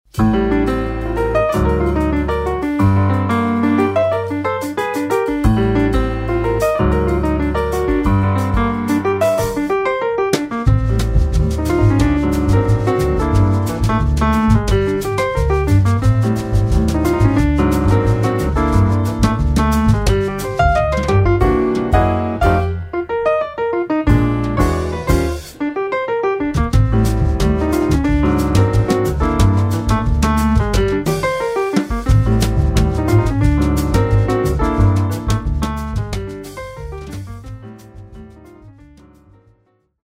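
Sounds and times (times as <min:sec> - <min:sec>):
bossa beguine music: 0:00.0 - 0:39.7.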